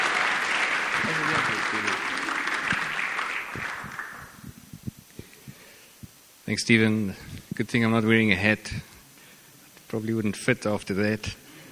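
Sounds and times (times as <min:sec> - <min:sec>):
crowd applause: 0:00.0 - 0:04.4
speech: 0:06.5 - 0:08.9, 0:09.9 - 0:11.4.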